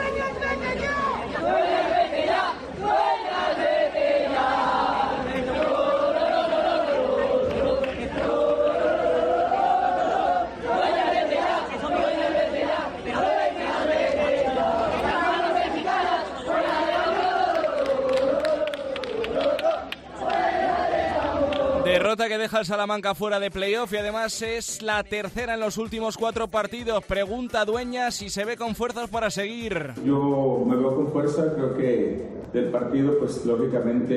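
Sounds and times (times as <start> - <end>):
football fans shouting protests at players: 0.6 - 21.9
speech: 22.3 - 34.1.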